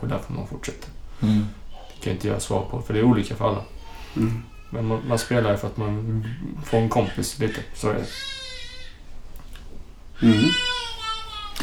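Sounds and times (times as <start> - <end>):
speech: 0.0 - 8.4, 10.2 - 10.8
children screaming: 1.7 - 9.1, 10.2 - 11.6.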